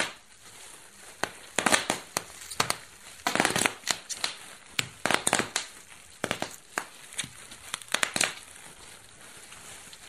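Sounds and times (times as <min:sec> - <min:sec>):
bubble wrap popping: 0:00.0 - 0:10.0
faint steady hiss: 0:00.0 - 0:10.0.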